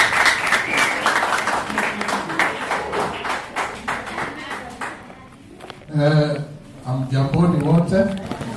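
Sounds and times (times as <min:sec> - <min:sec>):
audience applause at a party congress: 0:00.0 - 0:05.0
speech: 0:06.0 - 0:06.4, 0:07.1 - 0:08.4.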